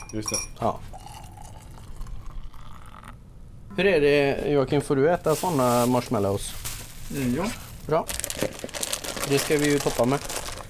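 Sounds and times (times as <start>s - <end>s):
speech: 0.1s - 1.0s, 3.8s - 10.4s
spiced cocoa milk pouring into a glass: 0.3s - 3.2s.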